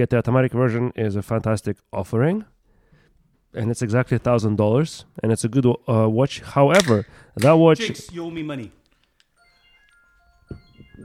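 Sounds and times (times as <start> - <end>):
speech: 0.0 - 2.5, 3.5 - 8.8
phone reminder alarm tune: 9.4 - 11.0.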